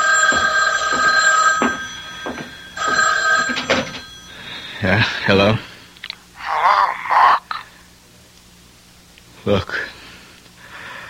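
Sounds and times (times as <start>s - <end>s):
telephone bell ringing: 0.0s - 5.3s
speech: 4.8s - 5.7s, 9.5s - 9.9s.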